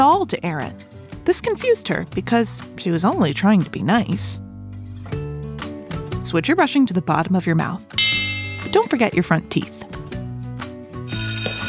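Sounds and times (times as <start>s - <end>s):
speech: 0.0s - 4.4s, 6.3s - 8.0s, 8.6s - 9.8s
school bell ringing for recess: 8.0s - 9.3s.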